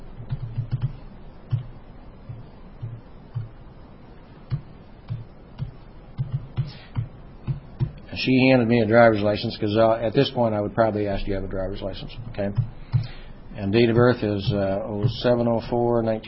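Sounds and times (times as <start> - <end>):
typing voter information on a computer keyboard: 0.2 - 3.6, 4.5 - 8.1, 12.0 - 13.2
speech: 8.2 - 12.8, 13.6 - 16.2.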